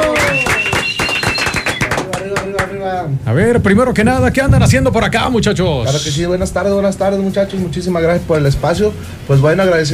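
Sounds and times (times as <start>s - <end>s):
high voices whooping and cheering: 0.0s - 2.6s
loud rapid clapping from a small group: 0.0s - 2.8s
speech: 3.2s - 9.9s.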